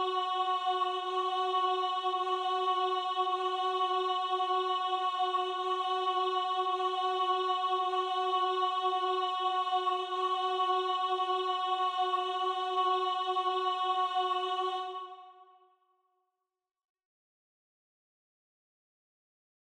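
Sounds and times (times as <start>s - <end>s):
alto voice singing: 0.0s - 15.4s.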